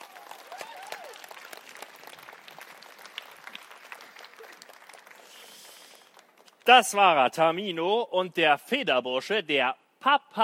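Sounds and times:
audience applause: 0.0 - 6.6
speech: 6.7 - 10.4.

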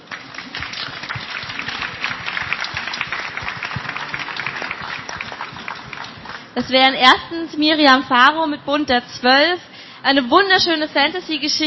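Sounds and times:
crowd applause: 0.0 - 6.6
speech: 6.6 - 11.6.

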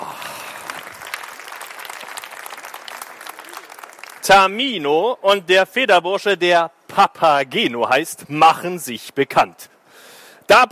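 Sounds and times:
audience applause: 0.0 - 4.6
speech: 4.2 - 9.8, 10.5 - 10.6.

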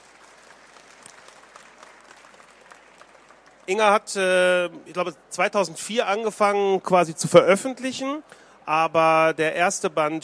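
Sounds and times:
audience applause: 0.0 - 4.0
speech: 3.7 - 10.2.

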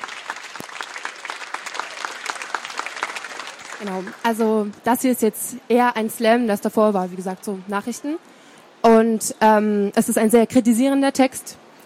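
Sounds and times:
audience applause: 0.0 - 4.8
speech: 3.8 - 11.6.

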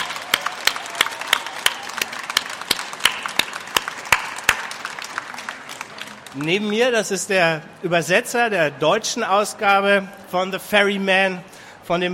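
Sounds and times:
audience applause: 0.0 - 6.8
speech: 6.3 - 12.1.

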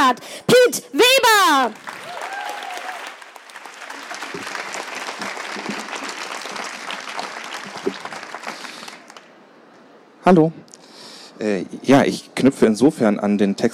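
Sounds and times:
speech: 0.1 - 2.0, 10.3 - 10.7, 11.4 - 13.7
poetry slam audience applauding: 1.8 - 9.3.

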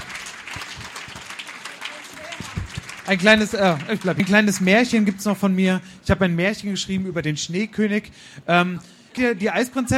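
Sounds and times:
audience applause: 0.0 - 5.1
speech: 2.4 - 9.9.

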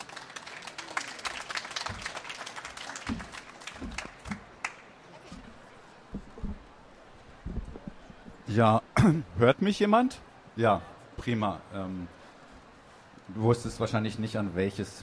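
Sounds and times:
audience applause: 0.0 - 6.8
low thumps and shuffling: 5.3 - 8.5
speech: 8.5 - 12.2, 13.3 - 15.0.

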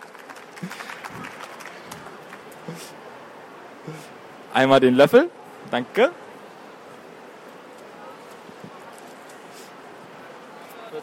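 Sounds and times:
crowd clapping: 0.0 - 2.8
speech: 4.6 - 6.2.

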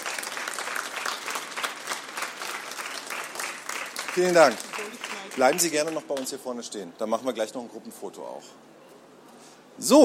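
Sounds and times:
audience applause: 0.0 - 6.4
speech: 4.2 - 8.8, 9.8 - 10.0.

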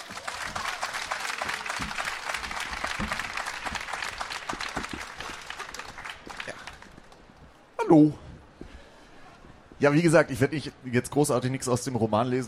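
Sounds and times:
audience applause: 0.0 - 7.5
speech: 7.9 - 8.2, 9.8 - 12.4.

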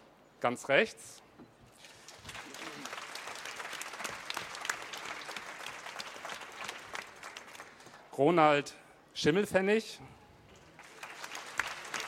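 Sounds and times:
speech: 0.4 - 1.3, 8.2 - 10.2
audience applause: 1.9 - 8.0, 10.8 - 12.0.

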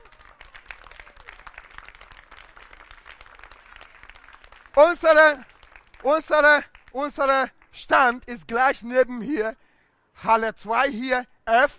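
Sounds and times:
audience applause: 0.0 - 6.9
speech: 4.8 - 9.6, 10.2 - 11.7.

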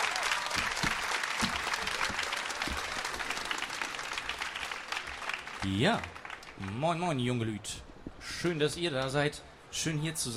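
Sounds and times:
audience applause welcoming a performer onto a stage: 0.0 - 7.0
speech: 5.7 - 10.3.

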